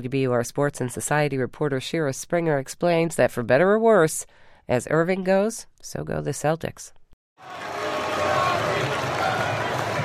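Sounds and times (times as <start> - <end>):
speech: 0.0 - 7.7
large arena crowd cheering: 7.4 - 10.0.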